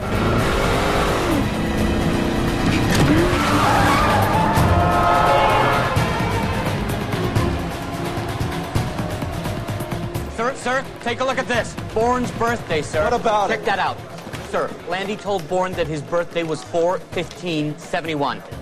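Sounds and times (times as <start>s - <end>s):
car tires squealing: 0.0s - 11.0s
car engine roaring as it speeds off: 0.0s - 12.9s
speech: 10.7s - 18.6s.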